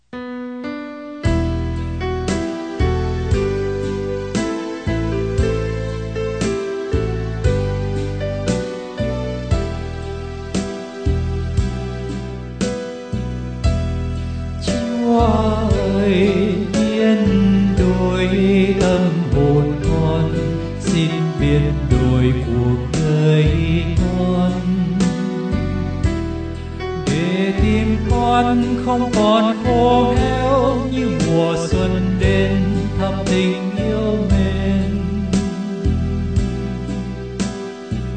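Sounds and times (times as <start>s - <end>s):
bass: 1.2s - 38.1s.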